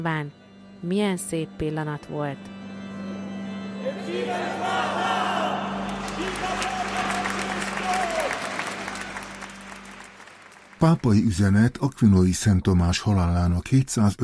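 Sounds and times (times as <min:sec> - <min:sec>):
speech: 0:00.0 - 0:02.6, 0:03.8 - 0:05.1, 0:10.8 - 0:14.2
parishioners applauding outside church: 0:05.7 - 0:11.7.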